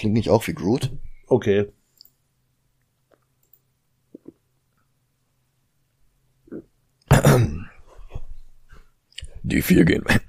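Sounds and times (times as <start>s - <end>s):
speech: 0.0s - 1.8s, 6.5s - 7.7s, 9.4s - 10.2s
person drinking a sip of water: 4.1s - 4.5s
throat clearing: 6.5s - 7.8s.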